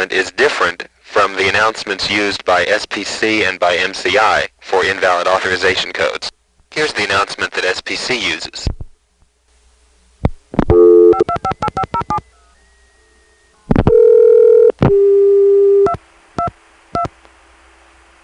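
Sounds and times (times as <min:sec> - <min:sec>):
speech: 0:00.0 - 0:08.8
long distance telephone line noise on an FX line: 0:10.7 - 0:17.1.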